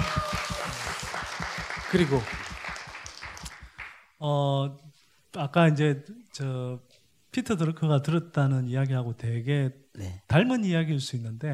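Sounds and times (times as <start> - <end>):
low thumping pulse: 0.0 - 3.0
audience applauding: 0.0 - 4.1
speech: 1.9 - 2.4, 4.2 - 11.5.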